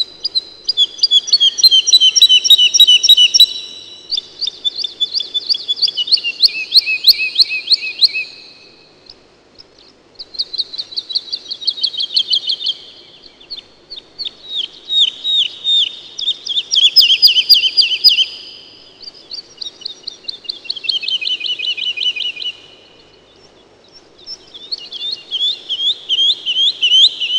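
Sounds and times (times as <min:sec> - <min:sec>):
woodlark singing: 0:00.0 - 0:27.3.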